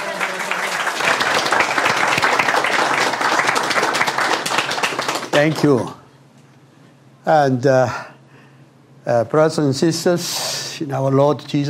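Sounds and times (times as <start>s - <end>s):
crowd applause: 0.0s - 5.8s
speech: 5.4s - 6.0s, 7.2s - 8.1s, 9.0s - 11.6s.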